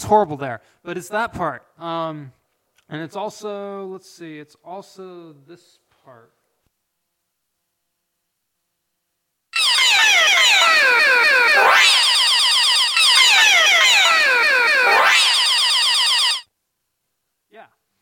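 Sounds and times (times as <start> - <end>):
speech: 0.0 - 6.4
yell pitched up through a sampler: 9.6 - 15.8.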